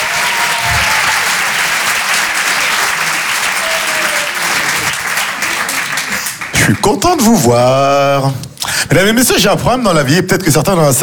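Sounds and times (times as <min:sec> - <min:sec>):
theatre crowd at the Apollo Théâtre, Paris, applauding a stand-up comedian: 0:00.0 - 0:07.6
speech: 0:06.9 - 0:11.0.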